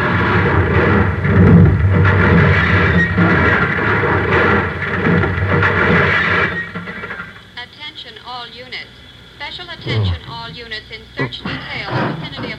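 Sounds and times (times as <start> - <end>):
car going over the edge, crashing: 0.0 - 7.4.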